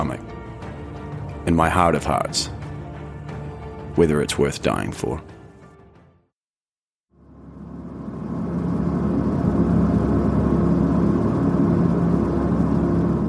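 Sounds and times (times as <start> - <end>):
speech: 0.0 - 0.4, 1.4 - 2.6, 4.0 - 5.3
small 12-seater plane in flight flown by Nepalese carrier Summit Air: 7.1 - 13.2.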